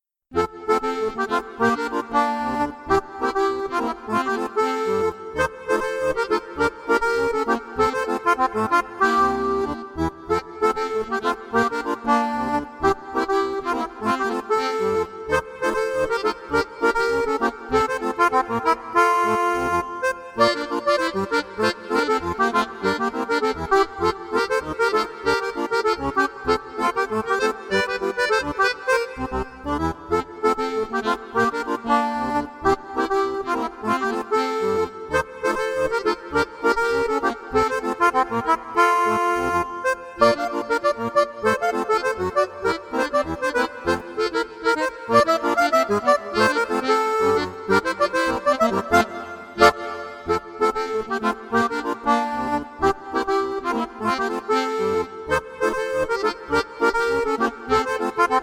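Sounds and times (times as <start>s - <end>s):
calypso duet: 0.4s - 58.4s.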